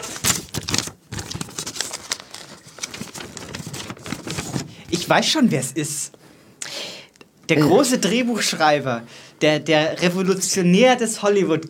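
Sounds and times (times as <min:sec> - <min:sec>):
envelope being opened: 0:00.0 - 0:04.7
speech: 0:05.1 - 0:06.2, 0:07.5 - 0:11.6.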